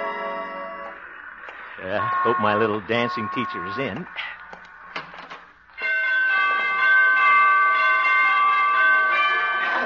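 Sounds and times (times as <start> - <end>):
door chime ringing: 0.0 - 4.2, 4.8 - 9.8
speech: 1.8 - 4.4.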